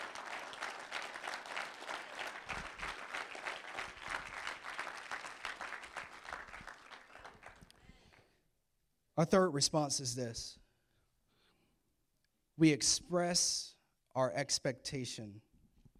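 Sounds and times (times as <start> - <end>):
audience applause, hand clapping: 0.0 - 7.8
speech: 9.2 - 10.6, 12.6 - 15.5.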